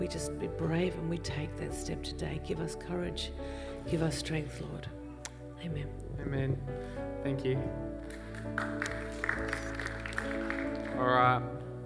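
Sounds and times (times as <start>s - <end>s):
speech: 0.0s - 5.0s, 5.6s - 11.6s
hand claps: 8.0s - 11.3s.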